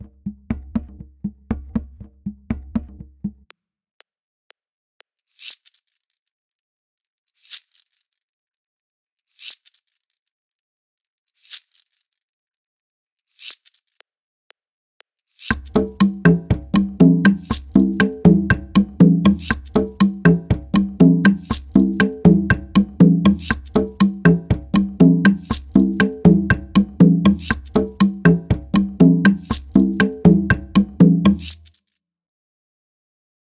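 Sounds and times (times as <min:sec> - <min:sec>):
Latin American rumba guaguanco rhythm at 120: 0:15.5 - 0:31.6.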